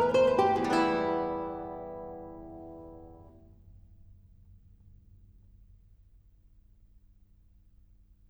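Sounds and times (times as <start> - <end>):
Venezuelan waltz for guitar in E minor: 0.0 - 3.4.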